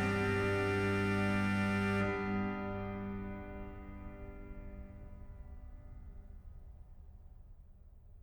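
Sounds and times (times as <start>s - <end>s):
organ playing chorale preludes: 0.0s - 5.3s.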